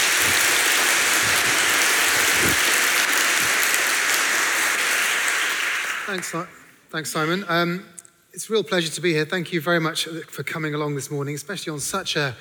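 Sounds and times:
audience applause: 0:00.0 - 0:06.6
speech: 0:06.1 - 0:12.3.

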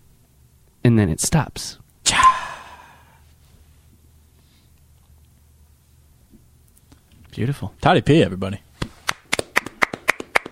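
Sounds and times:
speech: 0:00.9 - 0:02.2, 0:07.4 - 0:08.7
person hand clapping in a jacket: 0:08.8 - 0:10.4.

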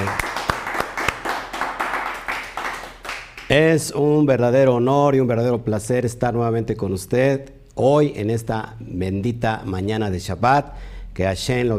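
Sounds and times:
loud applause: 0:00.0 - 0:03.5
speech: 0:03.5 - 0:11.7.

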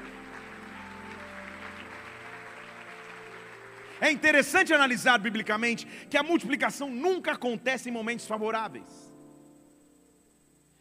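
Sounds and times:
audience applause: 0:00.0 - 0:05.2
speech: 0:04.0 - 0:09.1.

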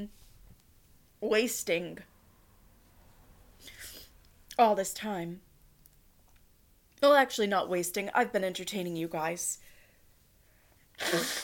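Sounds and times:
speech: 0:01.2 - 0:02.1, 0:04.6 - 0:05.5, 0:07.0 - 0:09.7, 0:11.0 - 0:11.4
nose blowing: 0:11.0 - 0:11.4.

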